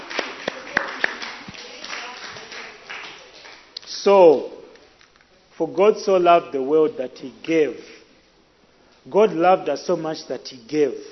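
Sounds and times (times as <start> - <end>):
scattered hand claps: 0.0 - 4.5
speech: 3.9 - 4.6, 5.6 - 8.0, 9.0 - 11.1.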